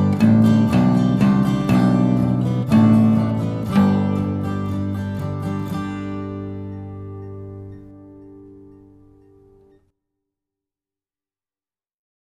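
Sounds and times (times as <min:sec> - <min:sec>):
Christmas bass solo: 0:00.0 - 0:08.0.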